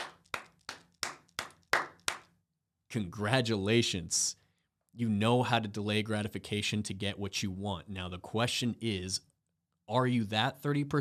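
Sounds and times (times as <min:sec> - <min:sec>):
slow evenly spaced hand claps of one person: 0:00.0 - 0:02.4
speech: 0:02.9 - 0:04.4, 0:05.0 - 0:09.3, 0:09.9 - 0:10.9.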